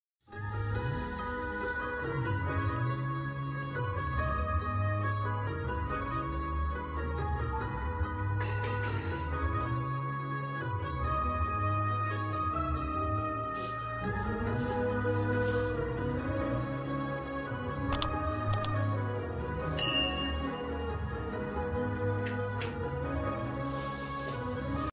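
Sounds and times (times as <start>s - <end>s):
romantic background music: 0.3s - 24.9s.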